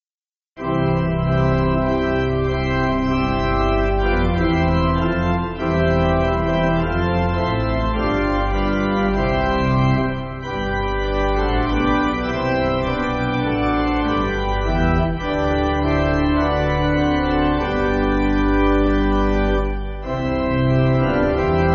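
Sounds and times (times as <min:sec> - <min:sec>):
pipe organ backing music for churches: 0:00.6 - 0:21.7.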